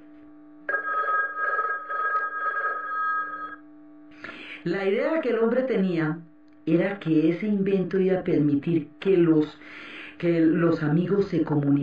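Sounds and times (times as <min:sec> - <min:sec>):
telephone bell ringing with a shrill buzzing peal: 0:00.7 - 0:03.6
speech: 0:04.6 - 0:11.8.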